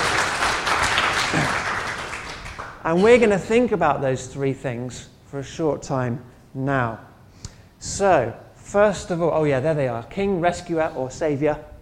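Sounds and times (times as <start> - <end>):
children applauding: 0.0 - 2.8
speech: 2.8 - 7.1, 7.8 - 11.7.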